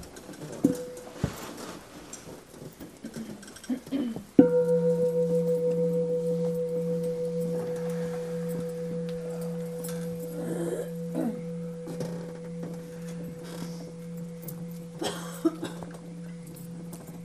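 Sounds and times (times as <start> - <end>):
meditation bell ringing: 4.4 - 17.2.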